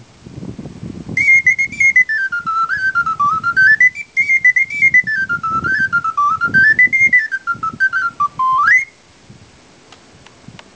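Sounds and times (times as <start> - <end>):
ocarina: 1.2 - 8.9.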